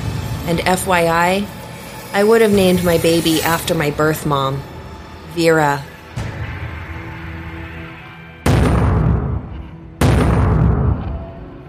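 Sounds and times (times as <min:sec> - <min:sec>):
low rumble: 0:00.0 - 0:11.4
speech: 0:00.5 - 0:04.7, 0:05.3 - 0:05.9
RPG launches and explosions: 0:08.4 - 0:11.0.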